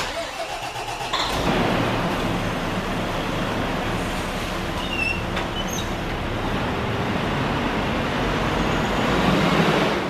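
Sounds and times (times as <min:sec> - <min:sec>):
Rosenbauer Panda airport fire engine: 0:00.0 - 0:10.0.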